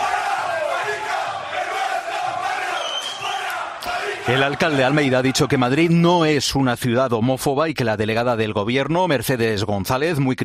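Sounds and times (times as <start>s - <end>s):
large crowd shouting and jeering at a street march: 0.0s - 5.9s
speech: 4.2s - 10.4s.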